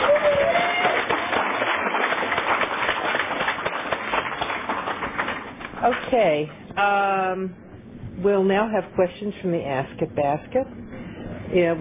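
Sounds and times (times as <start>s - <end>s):
audience applause: 0.0s - 5.8s
speech: 6.1s - 7.6s, 8.2s - 10.8s, 11.5s - 11.7s.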